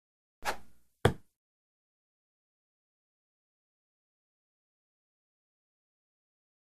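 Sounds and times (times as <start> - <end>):
dart throw with feather whoosh: 0.4 - 0.8
dart hitting target: 0.4 - 1.3.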